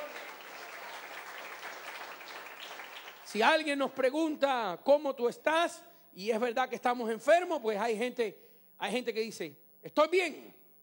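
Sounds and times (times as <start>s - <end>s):
audience applauding: 0.0s - 3.6s
speech: 3.3s - 10.6s.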